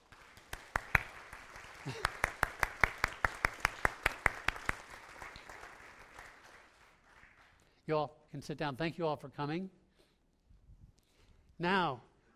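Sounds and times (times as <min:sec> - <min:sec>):
audience applauding: 0:00.0 - 0:07.6
speech: 0:01.8 - 0:02.1, 0:07.9 - 0:09.8, 0:11.6 - 0:12.1.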